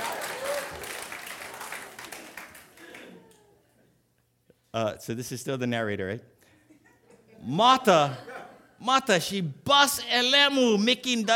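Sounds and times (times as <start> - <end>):
audience applause: 0.0 - 3.5
speech: 4.8 - 6.4, 7.4 - 11.3.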